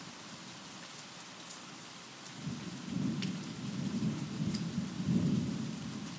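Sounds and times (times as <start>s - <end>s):
thunderstorm at midnight: 2.4s - 6.1s.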